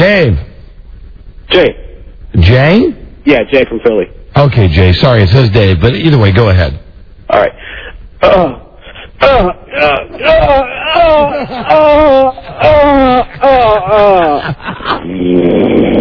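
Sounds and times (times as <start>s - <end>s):
speech: 0.0s - 0.5s, 1.5s - 1.8s, 2.4s - 8.6s, 9.2s - 15.9s
laughter: 8.2s - 15.2s
person imitating snoring: 14.8s - 15.9s.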